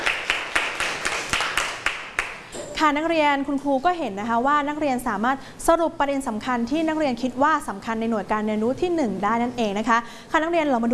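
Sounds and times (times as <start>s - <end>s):
students in a classroom clapping for a classmate: 0.0s - 2.5s
speech: 2.8s - 10.9s.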